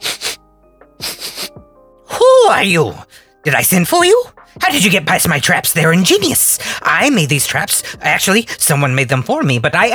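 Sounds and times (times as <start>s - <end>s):
rapid sniffing: 0.0s - 1.6s
speech: 2.5s - 9.9s.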